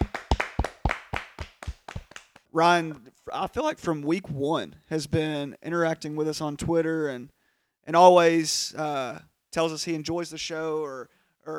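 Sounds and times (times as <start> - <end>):
hand clapping: 0.0 - 2.5
speech: 2.6 - 11.5.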